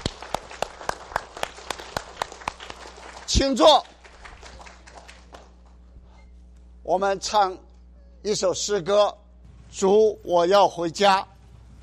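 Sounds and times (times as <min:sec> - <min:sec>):
applause at a church service: 0:00.0 - 0:05.9
speech: 0:03.3 - 0:03.9, 0:06.9 - 0:07.6, 0:08.2 - 0:11.3.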